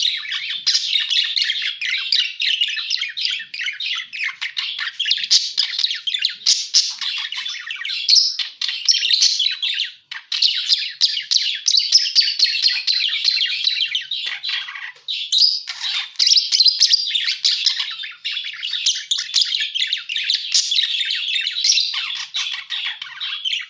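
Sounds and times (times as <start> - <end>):
parakeets chattering: 0.0 - 23.6.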